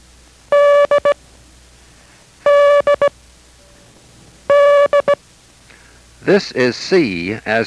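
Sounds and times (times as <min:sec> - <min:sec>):
Morse code letter D beeping tones: 0:00.5 - 0:01.2, 0:02.4 - 0:03.1, 0:04.5 - 0:05.2
speech: 0:06.3 - 0:07.6.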